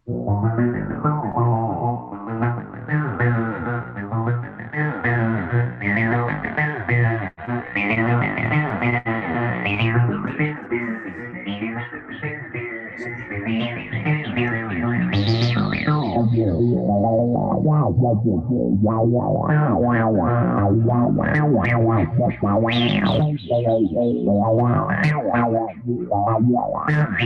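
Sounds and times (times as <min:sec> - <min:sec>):
distorted 303 synth line with sweeping resonant filter: 0:00.2 - 0:27.2.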